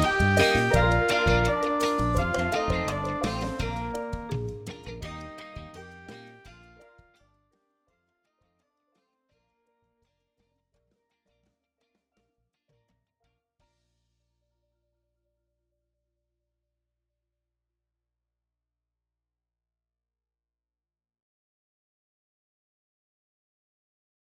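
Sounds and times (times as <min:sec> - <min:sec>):
trumpet in B flat: 0:00.0 - 0:06.8.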